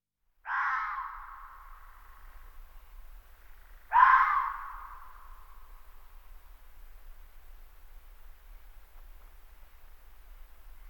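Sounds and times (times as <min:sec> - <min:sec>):
red fox scream-like call: 0:00.5 - 0:01.6, 0:03.9 - 0:05.1.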